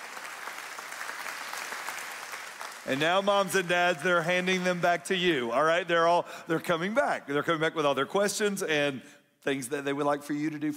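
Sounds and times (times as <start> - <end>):
audience applause congratulating teachers administrators and other educators: 0.0 - 4.8
speech: 2.9 - 10.7.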